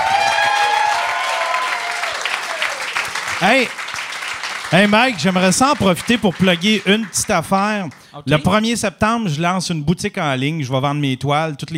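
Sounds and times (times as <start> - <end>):
audience applause: 0.0 - 8.2
speech: 3.4 - 3.9, 4.7 - 11.7.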